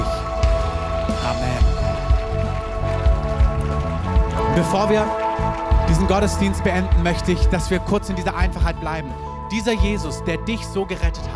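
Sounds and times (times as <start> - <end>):
audience applause: 0.0 - 8.4
speech: 1.1 - 1.6, 4.6 - 5.2, 5.9 - 11.3.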